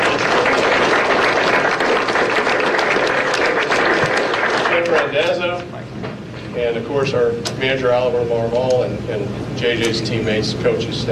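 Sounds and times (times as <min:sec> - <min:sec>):
audience applause: 0:00.0 - 0:05.5
speech: 0:06.7 - 0:11.1.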